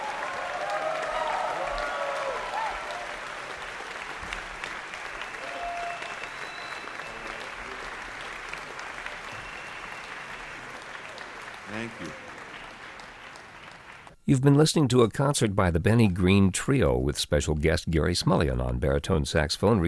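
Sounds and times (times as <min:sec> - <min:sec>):
cheers: 0:00.0 - 0:14.1
concert audience applause: 0:00.0 - 0:14.2
faint whistles: 0:05.2 - 0:07.5, 0:09.2 - 0:10.7
speech: 0:11.8 - 0:12.3, 0:14.3 - 0:19.8.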